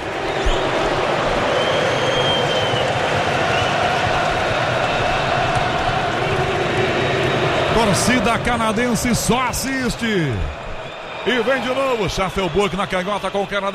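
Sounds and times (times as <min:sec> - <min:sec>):
Moroccan fans chanting in stadium: 0:00.0 - 0:09.0
speech: 0:07.8 - 0:10.6, 0:11.2 - 0:13.7.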